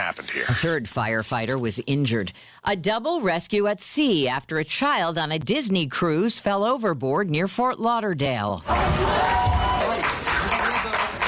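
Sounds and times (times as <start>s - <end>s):
speech: 0.0s - 9.9s
onlookers clapping after a child's rescue at sea: 8.7s - 11.2s.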